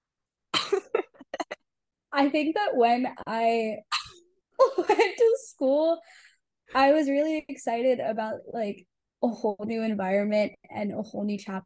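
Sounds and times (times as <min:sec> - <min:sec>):
person coughing after choking on something: 0:00.6 - 0:01.6
speech: 0:02.2 - 0:03.9, 0:04.7 - 0:11.6.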